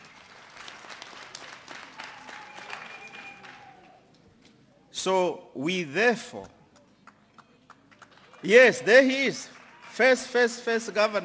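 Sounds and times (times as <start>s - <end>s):
crowd applause: 0.0s - 4.0s, 7.9s - 10.4s
speech: 5.0s - 6.6s, 8.4s - 11.2s.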